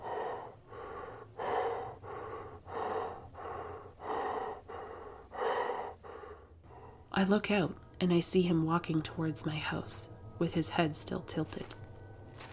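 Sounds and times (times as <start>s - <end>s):
excited heavy breathing: 0.0s - 7.1s
speech: 7.2s - 11.8s.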